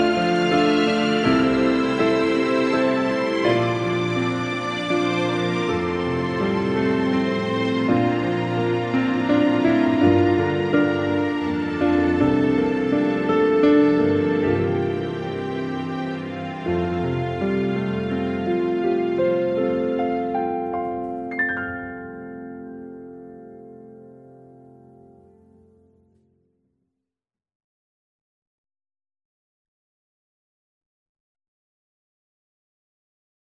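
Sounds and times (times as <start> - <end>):
elf theme background music: 0.0 - 25.5.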